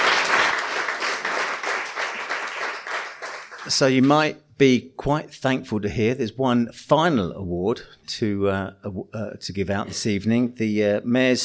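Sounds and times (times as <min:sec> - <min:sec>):
audience applause: 0:00.0 - 0:04.2
speech: 0:03.7 - 0:11.4.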